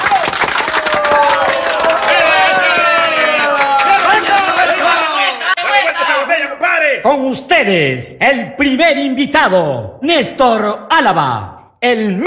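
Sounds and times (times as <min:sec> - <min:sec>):
audience applause: 0:00.0 - 0:06.3
voices cheering and calling out: 0:00.0 - 0:07.0
speech: 0:07.0 - 0:12.2.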